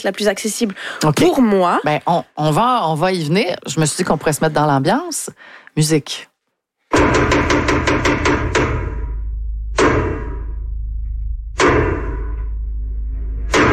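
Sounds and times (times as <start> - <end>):
speech: 0.0 - 6.3, 6.9 - 8.8
loud booming theatre blows announcing a play: 6.9 - 13.7
traditional French theatre knocks, heavy wooden thuds announcing a play: 6.9 - 13.7.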